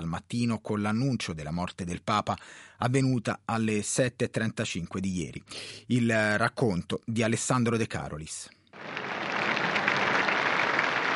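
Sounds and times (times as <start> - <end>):
speech: 0.1 - 8.9
applause from a crowd of 12,000 in St. Peter's Square: 8.8 - 11.1.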